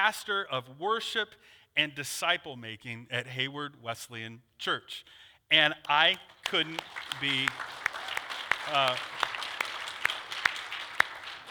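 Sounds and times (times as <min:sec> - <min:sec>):
speech: 0:00.0 - 0:07.8, 0:08.7 - 0:09.2
congregation clapping at Hayward Wesleyan Church: 0:05.8 - 0:11.4.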